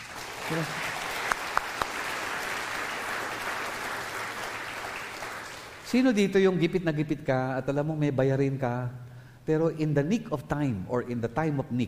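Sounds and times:
loud audience applause: 0:00.0 - 0:05.8
speech: 0:00.5 - 0:00.9, 0:05.9 - 0:11.8.

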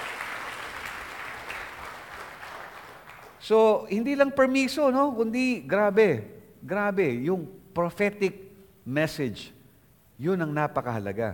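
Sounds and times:
church congregation clapping in praise of the Lord: 0:00.0 - 0:03.8
speech: 0:03.5 - 0:09.6, 0:10.2 - 0:11.3.

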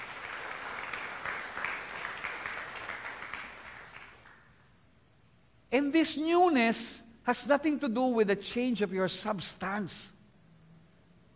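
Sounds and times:
church congregation applauding during a sermon: 0:00.0 - 0:04.6
speech: 0:05.8 - 0:10.2.

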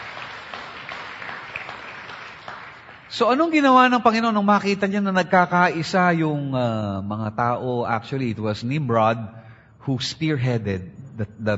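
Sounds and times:
church congregation applauding: 0:00.0 - 0:03.6
speech: 0:03.1 - 0:11.5.

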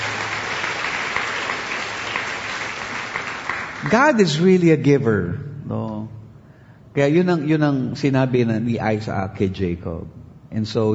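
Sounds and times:
church congregation applauding during a sermon: 0:00.0 - 0:04.6
speech: 0:03.9 - 0:05.8, 0:07.0 - 0:10.9.

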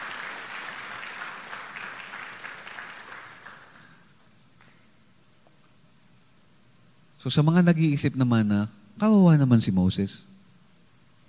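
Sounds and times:
church congregation applauding during a service: 0:00.0 - 0:04.0
speech: 0:07.2 - 0:10.3.

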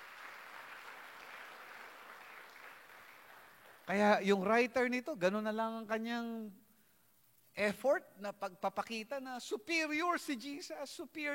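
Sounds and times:
church congregation applauding in praise: 0:00.0 - 0:04.2
speech: 0:03.9 - 0:06.6, 0:07.6 - 0:11.3.

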